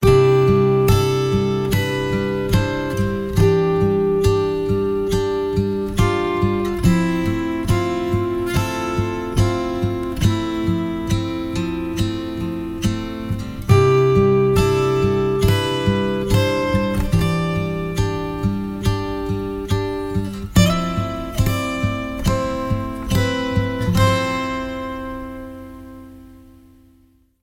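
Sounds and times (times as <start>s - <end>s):
reflective acoustic music: 0.0s - 27.4s.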